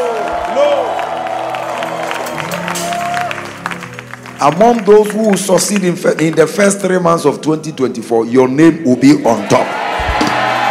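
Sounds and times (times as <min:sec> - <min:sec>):
church congregation cheering and whooping: 0:00.0 - 0:03.9, 0:09.4 - 0:10.6
church congregation clapping at a night prayer meeting: 0:00.0 - 0:07.3
speech: 0:04.4 - 0:09.8.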